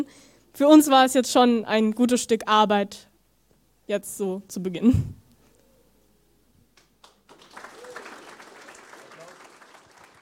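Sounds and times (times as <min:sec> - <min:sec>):
speech: 0:00.0 - 0:03.1, 0:03.9 - 0:05.2
audience applause: 0:07.0 - 0:10.1.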